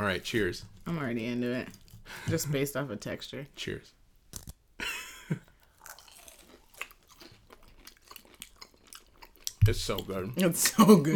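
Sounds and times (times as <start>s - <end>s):
speech: 0.0s - 4.0s, 5.3s - 5.5s, 9.6s - 11.1s
chewing crunchy food: 5.4s - 10.6s.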